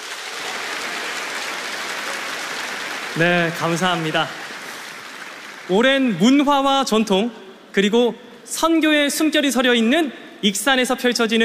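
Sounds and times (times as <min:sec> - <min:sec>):
audience applause: 0:00.0 - 0:06.4
speech: 0:03.2 - 0:04.4, 0:05.7 - 0:11.4.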